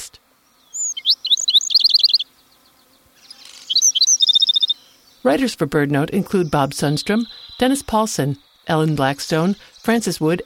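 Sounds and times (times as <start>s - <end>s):
black-throated sparrow song: 0.3s - 10.4s
speech: 5.2s - 10.4s.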